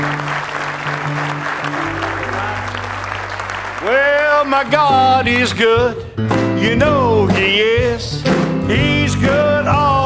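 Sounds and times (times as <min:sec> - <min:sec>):
audience hand clapping in praise: 0:00.0 - 0:05.0
speech: 0:03.8 - 0:09.9.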